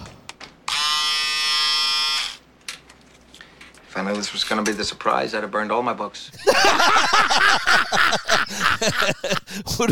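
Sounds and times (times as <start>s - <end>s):
electric razor buzzing: 0.7s - 2.4s
speech: 4.0s - 9.9s
laughter: 6.4s - 9.9s.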